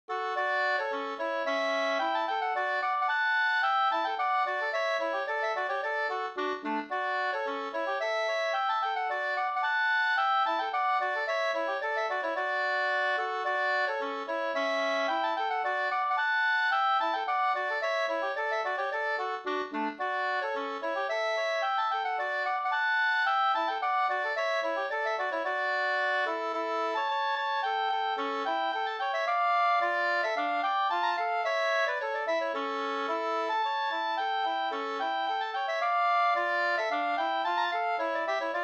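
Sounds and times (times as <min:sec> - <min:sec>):
Slangpolska folk dance tune: 0:00.1 - 0:38.6.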